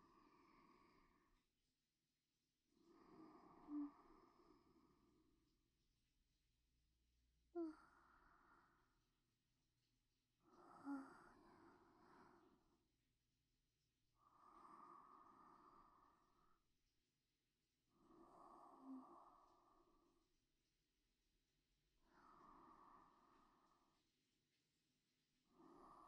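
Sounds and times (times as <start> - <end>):
sleep breathing: 0.0 - 1.5, 2.8 - 5.4, 7.5 - 9.0, 10.4 - 12.8, 14.2 - 16.6, 17.9 - 20.3, 22.0 - 24.1, 25.4 - 26.0.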